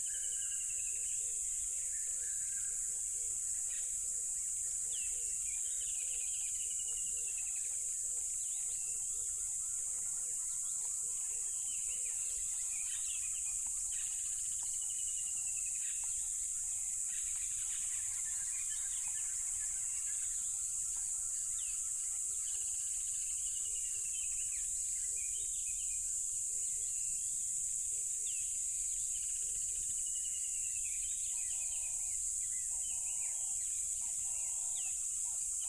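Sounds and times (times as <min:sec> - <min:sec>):
crickets trilling: 0:00.0 - 0:35.6.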